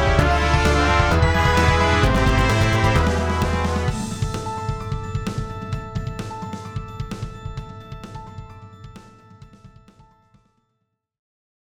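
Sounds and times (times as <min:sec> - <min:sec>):
battle music: 0:00.0 - 0:07.4.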